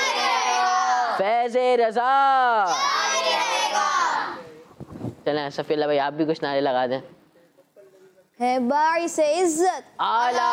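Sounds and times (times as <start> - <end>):
crowd chanting religious slogans in praise of Ala Hazrat: 0.0 - 1.2, 2.7 - 4.5
speech: 1.2 - 4.0, 5.3 - 7.2, 8.4 - 10.5.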